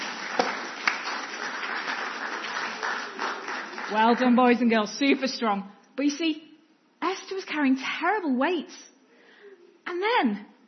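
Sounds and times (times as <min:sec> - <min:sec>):
children clapping: 0:00.0 - 0:04.5
speech: 0:03.9 - 0:08.9, 0:09.9 - 0:10.5.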